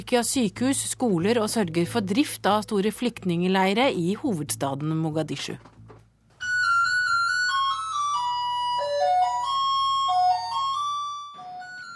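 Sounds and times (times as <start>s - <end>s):
speech: 0.0s - 5.7s
electronic school bell ringing for class in Mogadishu: 6.6s - 11.9s.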